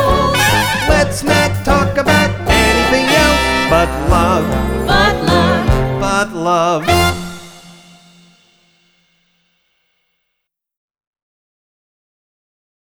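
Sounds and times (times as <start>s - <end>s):
guided vocals reprise: 0.0s - 8.0s.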